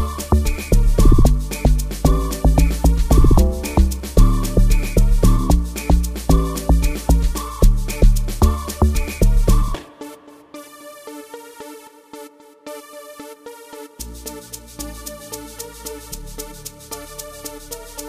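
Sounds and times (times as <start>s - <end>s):
rainy amapiano music: 0.0s - 10.2s.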